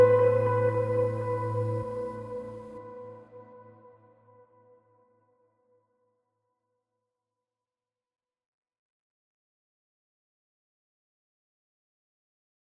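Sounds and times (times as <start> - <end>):
guitar test: 0.0 - 2.7.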